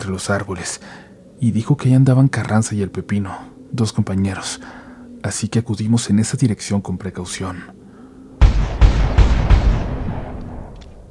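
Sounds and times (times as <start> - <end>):
speech: 0.1 - 7.8
burst of gunfire: 8.4 - 10.8.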